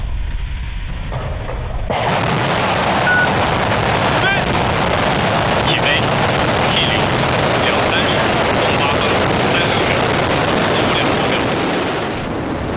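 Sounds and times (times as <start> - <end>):
rocket engine ignition and launch: 0.0 - 12.7.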